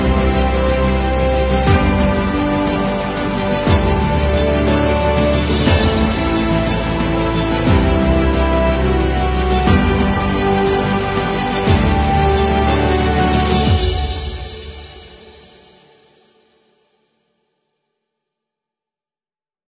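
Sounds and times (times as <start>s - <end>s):
orchestra playing epic music: 0.0s - 15.4s.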